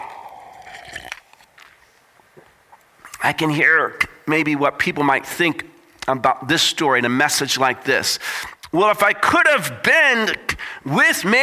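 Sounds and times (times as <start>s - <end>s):
drinking sips of water: 0.0s - 1.5s
speech: 3.2s - 11.4s.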